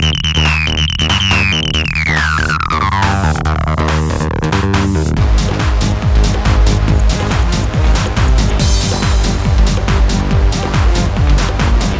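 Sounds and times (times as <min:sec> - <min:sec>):
techno trance music: 0:00.0 - 0:11.9.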